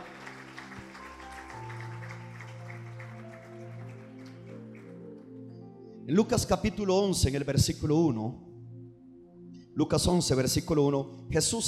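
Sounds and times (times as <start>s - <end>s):
audience applause: 0.0s - 5.3s
speech: 6.1s - 8.5s, 9.8s - 11.6s.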